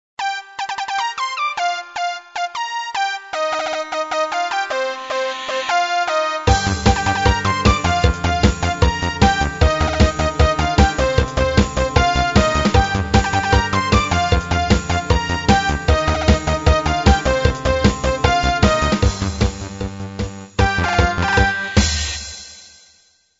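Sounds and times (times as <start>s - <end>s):
ringtone: 0.2s - 19.5s, 20.6s - 22.3s.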